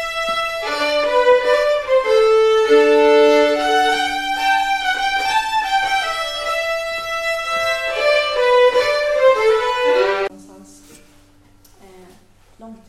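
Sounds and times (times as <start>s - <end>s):
polska dance tune: 0.0s - 10.3s.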